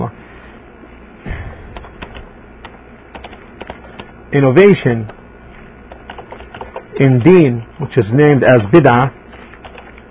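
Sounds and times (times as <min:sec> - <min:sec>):
low steady hum: 0:00.0 - 0:10.0
keyboard typing: 0:01.8 - 0:04.1, 0:05.9 - 0:07.0, 0:09.3 - 0:10.0
speech: 0:04.3 - 0:05.2, 0:07.0 - 0:09.2.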